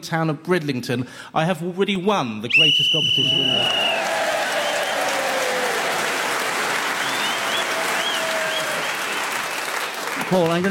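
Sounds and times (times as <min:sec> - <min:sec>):
speech: 0:00.0 - 0:04.1, 0:10.3 - 0:10.7
whistles and cheers: 0:02.5 - 0:10.0
audience applause: 0:03.2 - 0:10.7.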